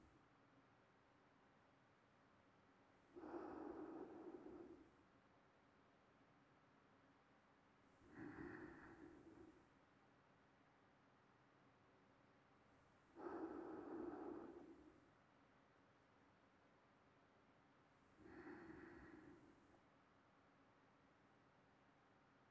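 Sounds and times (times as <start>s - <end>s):
sleeping breathing: 3.2s - 5.0s, 8.1s - 9.6s, 13.2s - 15.1s, 18.2s - 19.7s.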